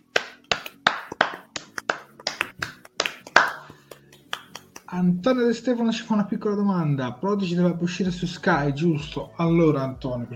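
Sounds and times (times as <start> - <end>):
scattered applause from a small audience: 0.9 - 3.6
speech: 4.9 - 10.3.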